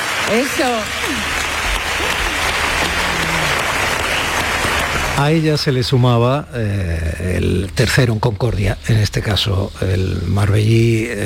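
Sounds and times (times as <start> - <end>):
audience applause: 0.0 - 5.8
speech: 0.3 - 1.4, 5.2 - 11.2.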